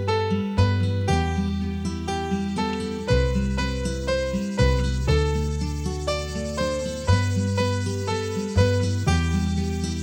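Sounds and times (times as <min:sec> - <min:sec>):
cicada song: 0:00.1 - 0:10.0.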